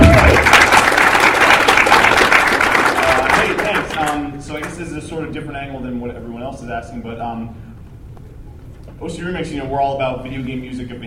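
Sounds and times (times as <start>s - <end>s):
audience applause: 0.0s - 4.2s
speech: 4.9s - 7.7s, 9.0s - 11.0s.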